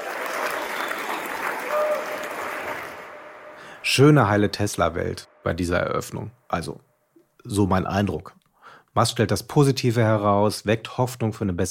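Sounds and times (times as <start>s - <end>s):
audience applause: 0.0s - 4.0s
speech: 3.9s - 8.4s, 9.0s - 11.6s.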